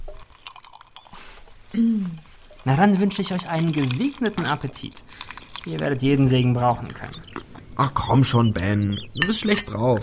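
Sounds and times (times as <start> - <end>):
gulping cold, fizzy lemonade: 0.0 - 8.0
speech: 1.7 - 10.0.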